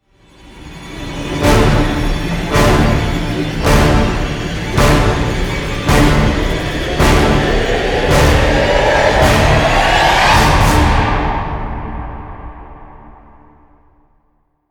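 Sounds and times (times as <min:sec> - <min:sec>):
orchestra playing: 0:00.8 - 0:12.6
choir singing: 0:01.3 - 0:13.3.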